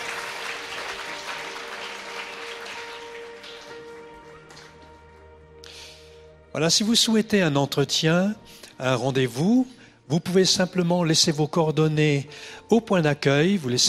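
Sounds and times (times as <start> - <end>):
audience applause: 0.0 - 5.1
speech: 6.6 - 13.8.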